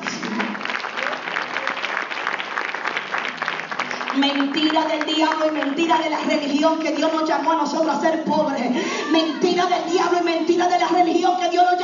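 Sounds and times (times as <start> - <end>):
audience applause: 0.0 - 7.6
speech: 4.2 - 11.8.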